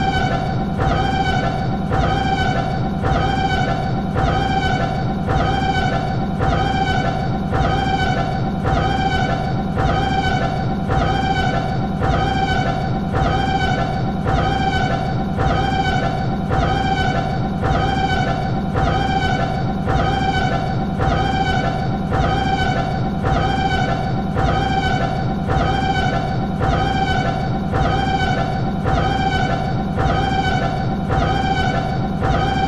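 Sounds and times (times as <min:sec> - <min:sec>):
siren alarm: 0:00.0 - 0:32.6.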